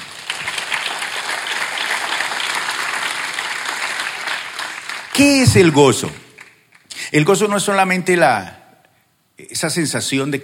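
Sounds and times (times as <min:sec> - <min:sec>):
audience applause: 0:00.0 - 0:06.5
speech: 0:05.2 - 0:06.2, 0:07.1 - 0:08.6, 0:09.4 - 0:10.4.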